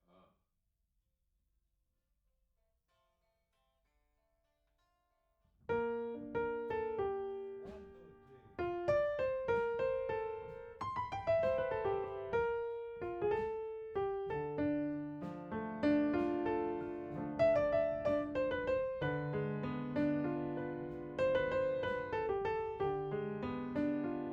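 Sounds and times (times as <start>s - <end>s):
piano note A: 5.7s - 24.3s.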